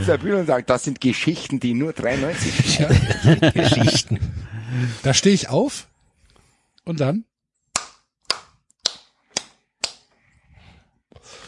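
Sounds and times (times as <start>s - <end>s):
speech: 0.0s - 5.9s, 6.9s - 7.3s
laughter: 2.0s - 4.6s
hand claps: 7.7s - 10.1s.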